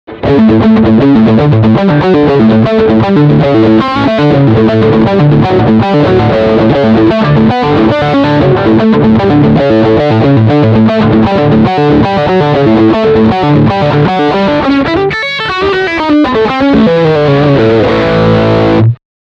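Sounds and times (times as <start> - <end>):
guitar riff on bridge pickup: 0.1 - 19.0.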